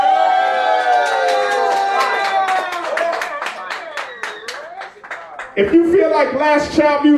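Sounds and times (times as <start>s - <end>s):
live audience cheering and whooping for a rap battle at Phoenix Landing: 0.0s - 5.4s
speech: 5.6s - 7.1s.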